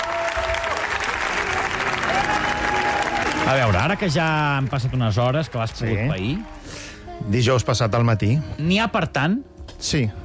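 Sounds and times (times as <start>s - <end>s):
applause: 0.0s - 6.6s
speech: 3.5s - 10.2s.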